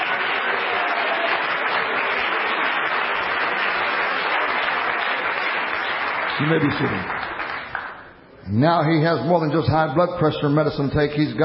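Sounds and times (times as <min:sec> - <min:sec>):
audience clapping hands: 0:00.0 - 0:08.2
speech: 0:06.4 - 0:07.3, 0:08.5 - 0:11.4.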